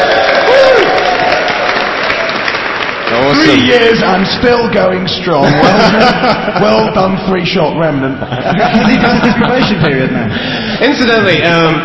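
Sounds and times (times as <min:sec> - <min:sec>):
audience round of applause at a live show: 0:00.0 - 0:04.2
speech: 0:03.5 - 0:11.8
laughter: 0:05.3 - 0:11.4.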